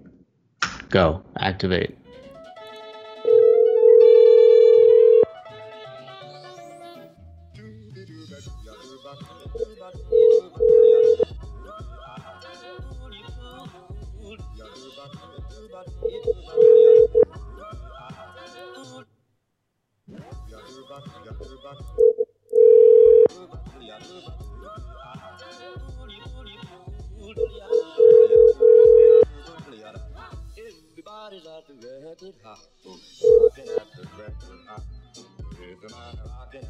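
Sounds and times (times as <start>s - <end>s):
speech: 0.9s - 2.0s
telephone dial tone while dialing a number: 3.3s - 5.3s, 10.2s - 11.2s, 16.1s - 17.2s, 22.0s - 23.3s, 27.7s - 29.2s, 33.2s - 33.6s.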